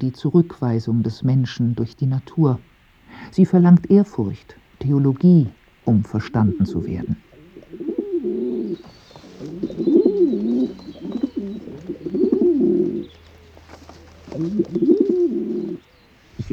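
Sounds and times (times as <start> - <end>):
speech: 0.0 - 7.8
pigeons cooing: 5.9 - 16.5
faint high chirps: 6.5 - 16.5.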